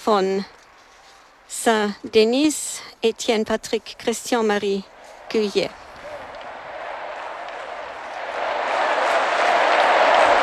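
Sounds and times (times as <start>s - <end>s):
speech: 0.0s - 0.6s, 1.6s - 5.8s
loud applause from a large crowd: 5.0s - 10.4s.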